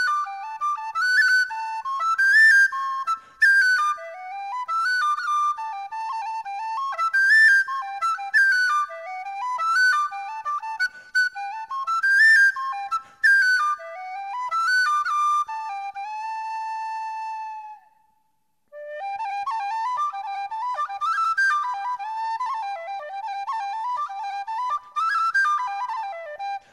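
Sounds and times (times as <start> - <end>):
whistles: 0.0 - 26.7.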